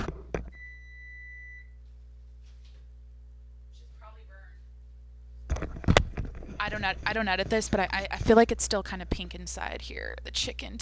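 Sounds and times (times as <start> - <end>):
kitchen oven alarm: 0.5 - 1.8
speech: 6.8 - 10.8.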